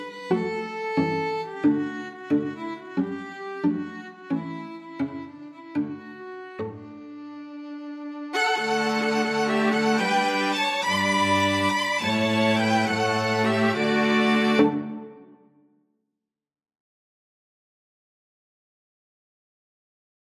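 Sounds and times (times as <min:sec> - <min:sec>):
string quartet: 0:00.0 - 0:15.4.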